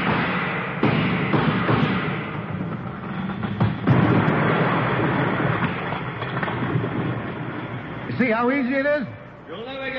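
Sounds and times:
gunshots fired at a stone column, radio drama sound effect: 0.0s - 7.8s
speech: 8.2s - 9.9s.

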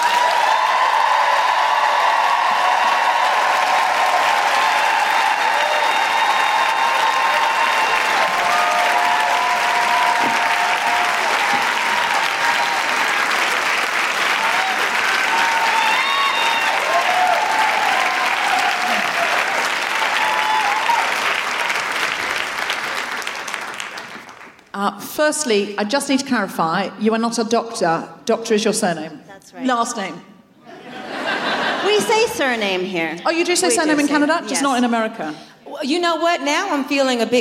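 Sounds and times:
audience applause welcoming a guest author onto the stage: 0.0s - 24.8s
speech: 25.2s - 30.3s, 31.8s - 37.4s
laughter: 30.6s - 35.1s.

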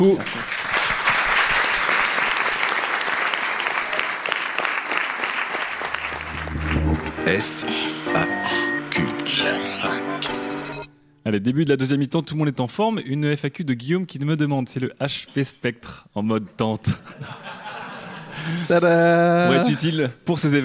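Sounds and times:
speech: 0.0s - 0.6s, 7.3s - 7.8s, 11.3s - 17.6s, 18.4s - 20.6s
audience applause: 0.2s - 10.2s
laughter: 5.8s - 10.8s, 16.9s - 18.8s
bright tonal musical jingle: 5.8s - 10.9s.

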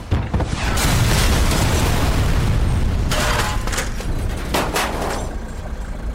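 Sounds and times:
rocket explosion: 0.0s - 4.4s
crackling bursts and scattered debris-like pops: 0.0s - 5.8s.

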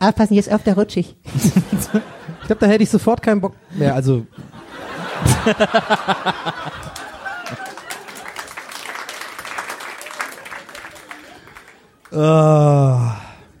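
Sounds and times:
speech: 0.0s - 4.4s, 5.2s - 7.6s, 12.1s - 13.2s
crowd laughing: 1.3s - 2.8s, 4.3s - 12.0s
crowd applause: 4.8s - 12.3s.

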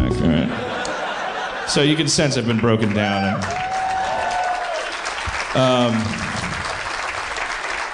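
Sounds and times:
laughter: 0.2s - 2.4s
speech: 1.7s - 3.7s, 5.5s - 6.3s
crowd applause: 2.4s - 7.9s
person whooping: 3.2s - 4.9s.

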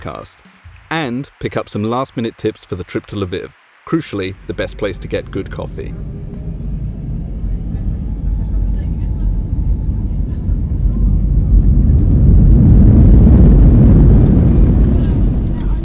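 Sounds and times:
speech: 0.0s - 6.1s
airplane landing at Lviv Airport: 4.1s - 15.8s.

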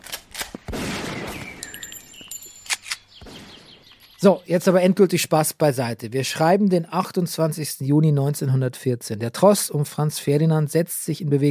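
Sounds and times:
gunfire on a military training ground: 0.0s - 4.3s
speech: 4.2s - 11.4s.

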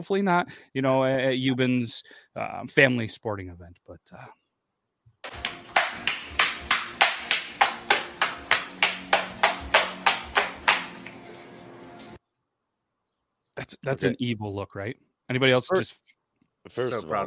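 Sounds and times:
speech: 0.0s - 4.4s, 13.6s - 17.2s
one person giving a round of applause: 5.3s - 11.2s.

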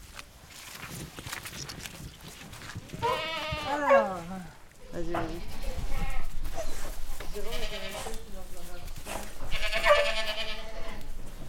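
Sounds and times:
rustling and shuffling: 0.0s - 11.4s
young goats bleating in goat barn: 3.0s - 6.5s, 7.2s - 8.3s, 9.4s - 11.2s.

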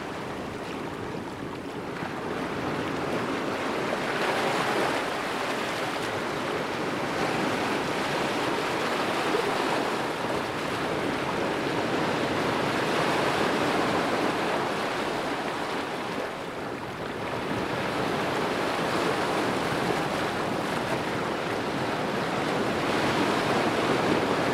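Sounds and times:
ocean waves on a tropical beach: 0.0s - 24.5s
wind noise: 0.0s - 24.5s.

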